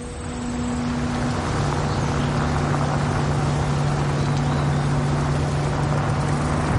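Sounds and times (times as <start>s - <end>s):
car driving on a red clay road: 0.0s - 6.7s.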